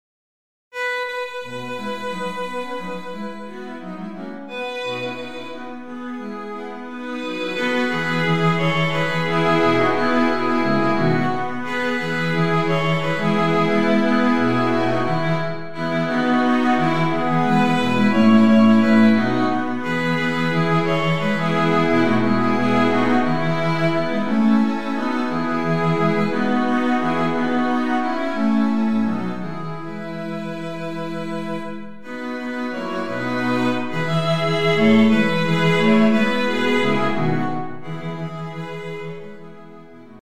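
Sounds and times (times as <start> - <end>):
string quintet: 0.8 - 40.2.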